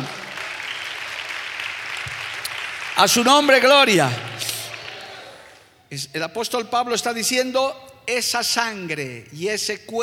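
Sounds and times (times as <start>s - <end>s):
audience applauding: 0.0s - 5.6s
speech: 3.0s - 4.3s, 5.9s - 10.0s.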